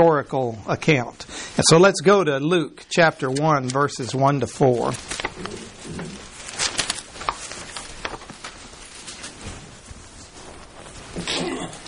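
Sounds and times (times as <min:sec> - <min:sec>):
speech: 0:00.0 - 0:06.2
rustling and shuffling: 0:02.9 - 0:11.8
sneeze: 0:11.2 - 0:11.8.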